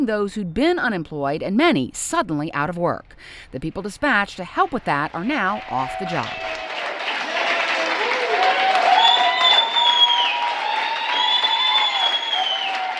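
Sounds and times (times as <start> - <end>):
speech: 0.0 - 6.6
employees and volunteers applauding in lobby: 4.6 - 12.9
scattered cheers and voices: 5.0 - 12.9.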